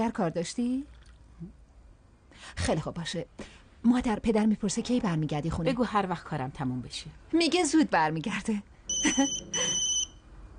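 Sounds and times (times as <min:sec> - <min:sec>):
speech: 0:00.0 - 0:01.6, 0:02.3 - 0:09.7
mobile phone ringing with high-pitched electronic tone: 0:08.9 - 0:10.2.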